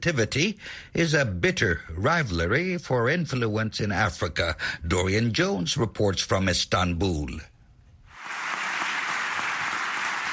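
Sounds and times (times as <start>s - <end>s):
speech: 0.0s - 7.5s
rousing applause from parliamentary deputies: 8.2s - 10.3s.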